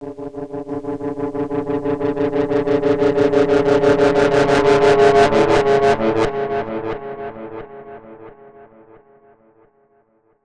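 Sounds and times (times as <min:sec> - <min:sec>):
distortion effect: 0:00.0 - 0:08.4.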